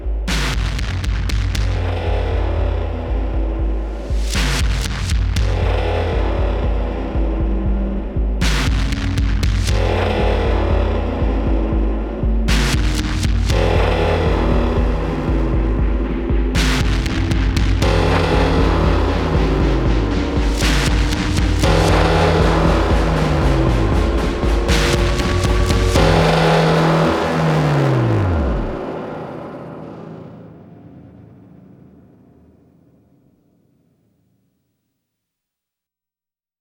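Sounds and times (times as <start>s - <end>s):
percussion: 0.1s - 29.3s.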